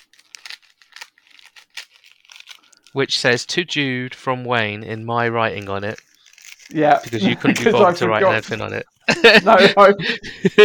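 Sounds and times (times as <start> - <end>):
wrapping paper crinkling and tearing as a present is unwrapped: 0.0 - 3.0, 5.1 - 7.6
speech: 2.9 - 6.1, 6.7 - 10.6
laughter: 7.1 - 10.6.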